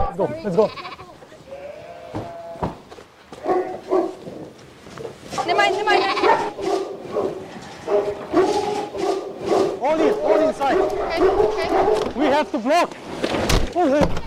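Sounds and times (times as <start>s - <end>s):
speech: 0.2s - 1.0s, 12.5s - 13.0s, 13.7s - 14.2s
lamb bleating: 0.4s - 2.7s, 5.8s - 6.5s
scuffling background: 2.1s - 13.5s.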